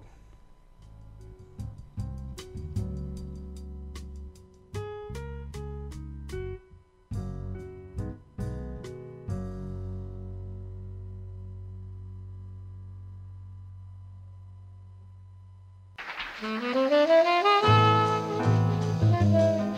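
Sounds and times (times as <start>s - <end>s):
jazz music: 1.2s - 10.8s, 16.0s - 19.7s.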